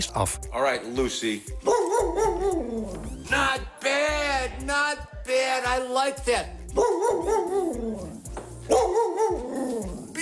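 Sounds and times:
speech: 0:00.0 - 0:08.2
dog barking and yelping: 0:01.6 - 0:03.0, 0:06.8 - 0:10.1.

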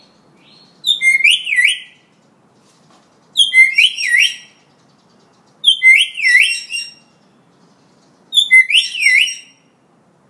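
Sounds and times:
Hill myna in full active song: 0:00.8 - 0:02.0, 0:03.4 - 0:04.5, 0:05.7 - 0:07.0, 0:08.4 - 0:09.6.

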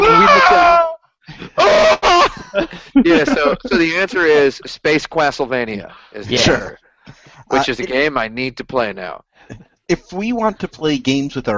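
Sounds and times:
death scream from the video game Impossible Mission 2: 0:00.0 - 0:02.8
laughter: 0:00.0 - 0:09.2, 0:09.9 - 0:11.5
short loud vocal bursts: 0:00.0 - 0:11.0
speech: 0:02.6 - 0:11.5.

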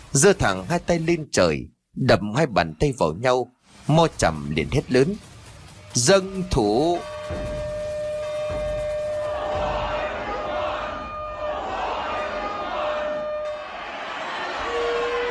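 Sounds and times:
speech: 0:00.1 - 0:05.3, 0:06.0 - 0:07.5
drums beating rapidly: 0:04.1 - 0:10.7
gongs: 0:05.2 - 0:15.2
buffalo horn blowing: 0:06.0 - 0:15.2.

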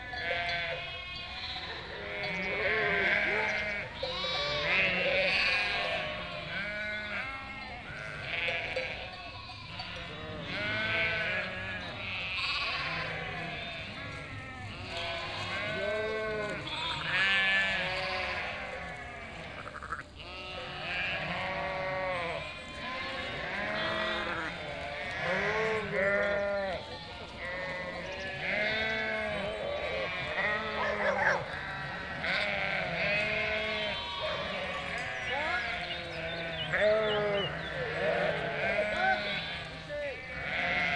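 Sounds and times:
sheep flock bleating: 0:00.0 - 0:40.9.

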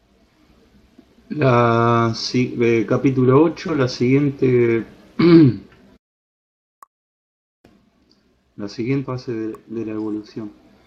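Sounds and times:
speech: 0:01.4 - 0:05.7, 0:08.6 - 0:10.6
woman reading aloud in Spanish clearing her throat: 0:05.2 - 0:05.7.

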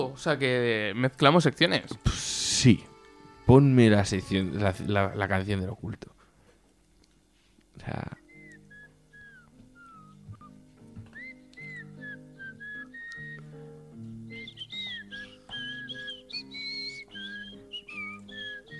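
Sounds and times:
speech: 0:00.0 - 0:02.9, 0:03.5 - 0:06.2, 0:07.8 - 0:08.2
whistled tune: 0:08.0 - 0:18.7.

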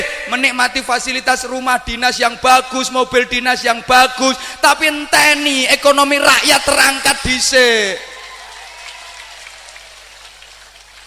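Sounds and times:
speech: 0:00.3 - 0:08.1
crowd applauding during a political speech: 0:08.1 - 0:11.0.

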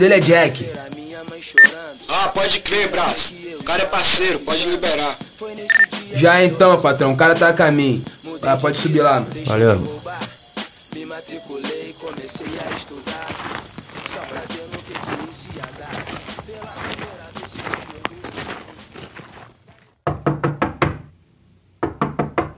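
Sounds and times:
speech: 0:00.0 - 0:01.0, 0:02.1 - 0:10.1
sharp knocks on a door: 0:20.0 - 0:21.1, 0:21.8 - 0:22.5.

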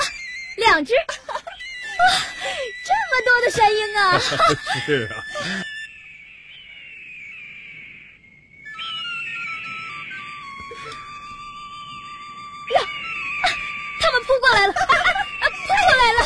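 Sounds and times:
high breathy eagle-flute melody played by a grandfather: 0:00.0 - 0:16.2
speech: 0:00.6 - 0:01.2, 0:02.0 - 0:05.7
laughter-like voices: 0:01.0 - 0:02.3, 0:04.1 - 0:05.6, 0:14.5 - 0:16.2.

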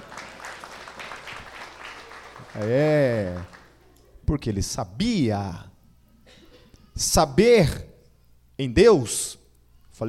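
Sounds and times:
faint audience applause during a religious talk: 0:00.0 - 0:03.8
speech: 0:02.5 - 0:03.6, 0:04.3 - 0:05.7, 0:07.0 - 0:07.9, 0:08.6 - 0:09.4.

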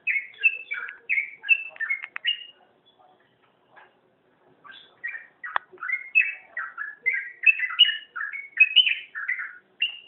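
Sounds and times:
oriental magpie-robin song of varied whistled and slurred notes: 0:00.0 - 0:03.0, 0:04.6 - 0:10.0.

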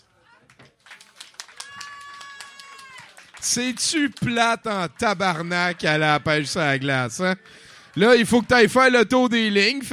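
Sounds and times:
audience applause: 0:00.8 - 0:06.8
speech: 0:03.4 - 0:09.9.

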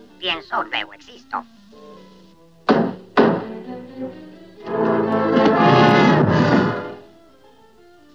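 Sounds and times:
speech: 0:00.2 - 0:01.6
messenger knocking on a door: 0:02.7 - 0:03.6
rough rumbling noise: 0:02.7 - 0:07.1.

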